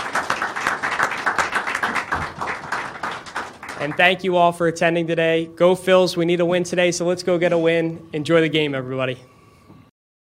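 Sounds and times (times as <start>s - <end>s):
audience round of applause: 0.0s - 4.1s
speech: 3.8s - 9.3s.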